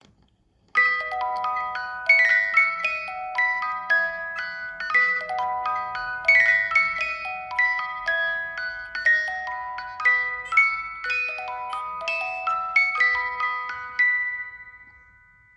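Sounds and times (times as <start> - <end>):
18-note music box playing a concerto: 0.7 - 15.5.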